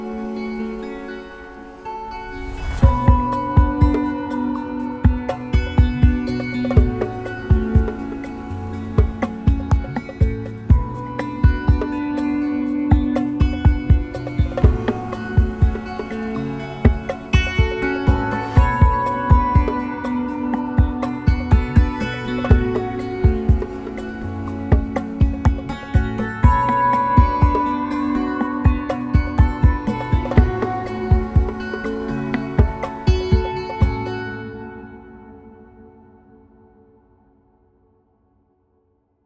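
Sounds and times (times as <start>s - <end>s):
autoharp: 0.0s - 35.6s.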